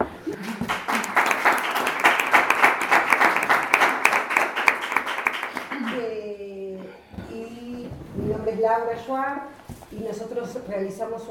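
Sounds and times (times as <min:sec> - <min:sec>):
audience applause: 0:00.0 - 0:06.0
speech: 0:08.8 - 0:11.2.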